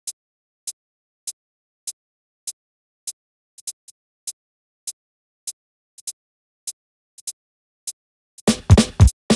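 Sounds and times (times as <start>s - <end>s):
drums: 8.5s - 9.3s.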